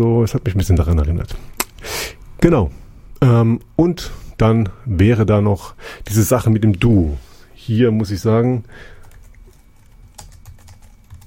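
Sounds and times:
speech: 0.0 - 1.6, 2.4 - 9.0
typing on a computer keyboard: 9.0 - 11.2.

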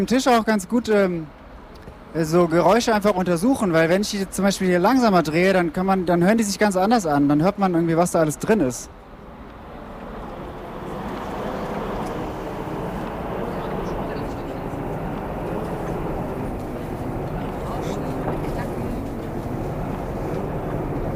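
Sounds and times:
speech: 0.0 - 1.4, 2.1 - 9.0
tram rumbling past: 8.2 - 21.1.

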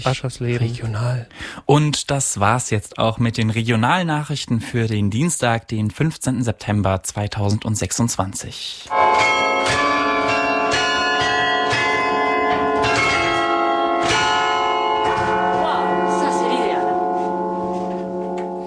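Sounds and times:
speech: 0.0 - 10.0
church bells of Halle ringing: 8.9 - 18.6.

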